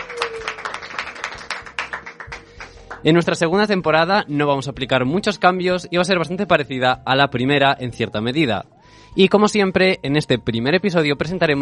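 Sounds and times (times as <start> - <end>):
small group applauding at a university debating association program: 0.0 - 3.2
speech: 3.0 - 11.6.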